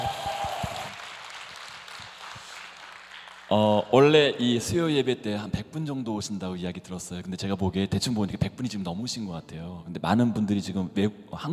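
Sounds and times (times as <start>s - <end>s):
audience applause for an encore: 0.0s - 3.8s
speech: 3.5s - 11.5s.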